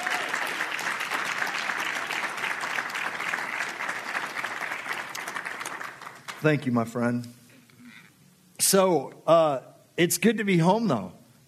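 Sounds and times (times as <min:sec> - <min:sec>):
crowd clapping: 0:00.0 - 0:07.0
speech: 0:06.4 - 0:07.4, 0:08.7 - 0:11.2.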